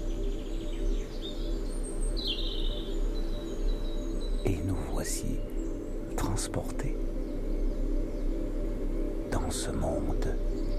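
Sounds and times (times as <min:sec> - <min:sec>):
birds chirping: 0:00.0 - 0:10.7
pollinating insects buzzing: 0:00.0 - 0:10.7
speech: 0:04.5 - 0:05.6, 0:06.2 - 0:07.2, 0:09.5 - 0:10.6.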